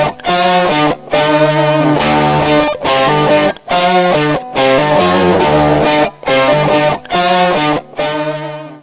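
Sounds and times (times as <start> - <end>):
rhythmic rock guitars: 0.0 - 8.8.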